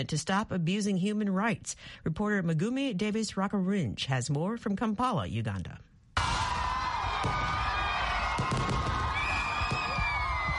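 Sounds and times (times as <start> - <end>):
speech: 0.0 - 5.9
crowd celebrating new year: 6.2 - 10.5
fireworks in the nighttime sky over Kampala, Uganda, at new year: 6.2 - 10.5.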